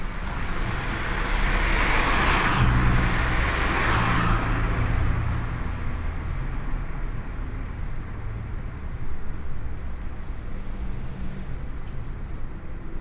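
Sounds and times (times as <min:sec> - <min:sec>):
traffic by a park strip: 0:00.0 - 0:12.9.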